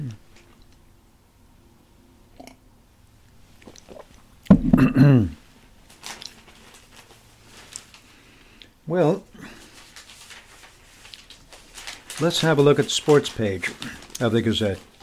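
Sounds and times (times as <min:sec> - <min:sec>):
sipping coffee: 0:03.6 - 0:04.2
speech: 0:04.8 - 0:05.4, 0:12.2 - 0:14.9.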